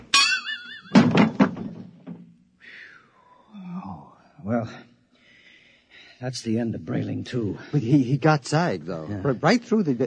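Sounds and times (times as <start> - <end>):
wavering ringing tone: 0.1 - 0.9
speech: 4.5 - 4.9, 6.2 - 10.0.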